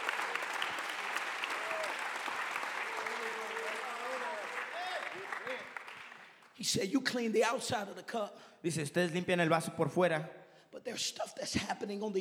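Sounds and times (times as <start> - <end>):
audience clapping hands: 0.0 - 6.6
speech: 6.6 - 12.1.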